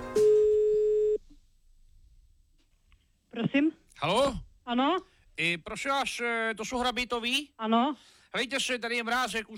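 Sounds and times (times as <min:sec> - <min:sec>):
telephone ringing tone: 0:00.2 - 0:01.2
speech: 0:04.0 - 0:09.5.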